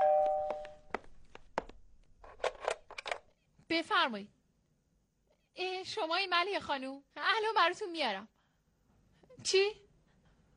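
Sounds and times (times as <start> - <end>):
doorbell chime: 0.0 - 0.8
speech: 3.8 - 4.4, 5.6 - 8.3, 9.4 - 9.8.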